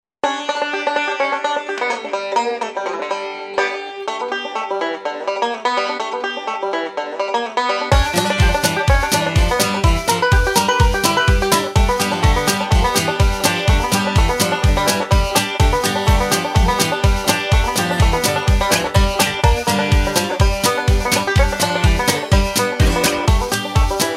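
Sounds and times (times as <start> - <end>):
banjo band playing: 0.2 - 24.1.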